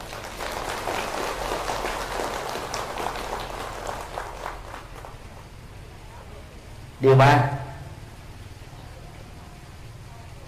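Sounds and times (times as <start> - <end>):
large audience applause: 0.0 - 5.6
speech: 7.0 - 7.6.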